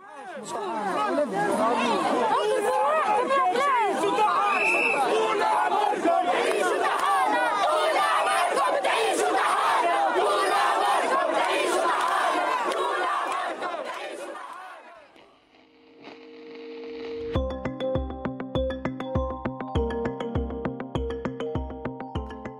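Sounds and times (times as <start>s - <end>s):
large crowd of protesters shouting and chanting: 0.0s - 15.2s
rhythmic music with a steady beat: 17.3s - 22.5s.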